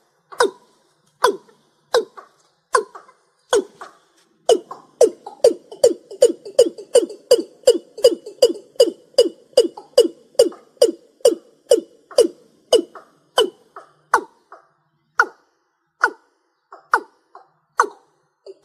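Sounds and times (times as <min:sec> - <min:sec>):
rail calling: 0:00.0 - 0:18.6.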